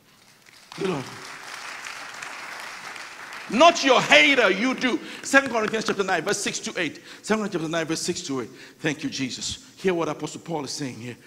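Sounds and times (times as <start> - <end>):
audience applause: 0.2 - 6.1
speech: 0.8 - 1.3, 3.5 - 11.2.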